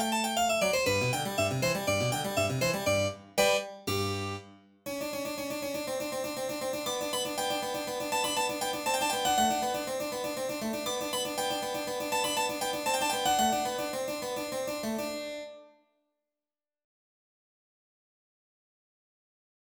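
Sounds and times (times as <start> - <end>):
piano piece in Pythagorean tuning: 0.0 - 15.3.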